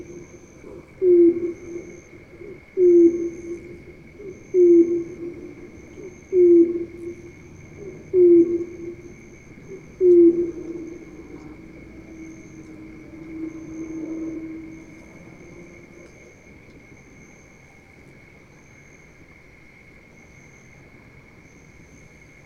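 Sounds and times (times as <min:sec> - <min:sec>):
heron, filtered: 0:00.0 - 0:16.8.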